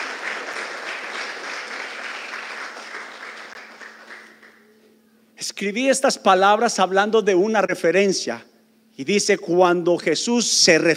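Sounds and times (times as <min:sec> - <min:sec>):
audience applause: 0:00.0 - 0:04.7
speech: 0:05.4 - 0:10.9.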